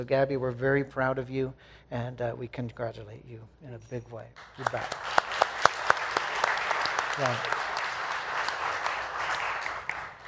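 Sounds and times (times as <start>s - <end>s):
speech: 0.0s - 5.2s, 7.2s - 7.6s
clapping: 4.4s - 10.2s.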